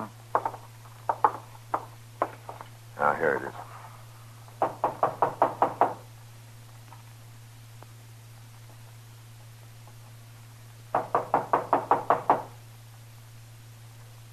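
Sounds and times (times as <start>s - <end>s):
knocking on a door: 0.3s - 2.6s, 4.6s - 6.1s, 10.9s - 12.6s
speech: 3.2s - 3.7s.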